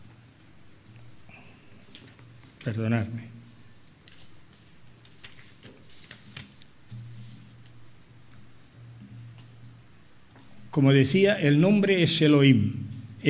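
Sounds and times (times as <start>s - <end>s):
low steady hum: 0.0s - 13.2s
paper pages sticking together being separated and turned: 1.8s - 2.8s, 3.8s - 7.8s
speech: 2.6s - 3.4s, 10.8s - 13.2s.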